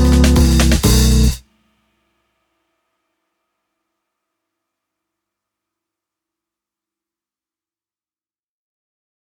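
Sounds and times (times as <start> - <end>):
vintage finger bass: 0.0 - 1.4.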